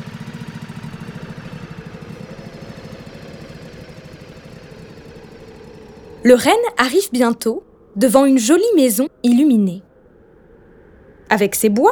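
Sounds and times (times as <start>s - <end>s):
snowmobile engine idling: 0.0s - 6.2s
speech: 6.2s - 9.9s, 11.3s - 11.9s.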